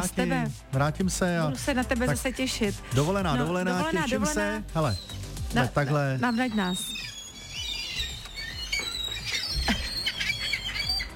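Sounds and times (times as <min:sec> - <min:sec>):
speech: 0:00.0 - 0:07.1
seagull calls: 0:05.9 - 0:11.1.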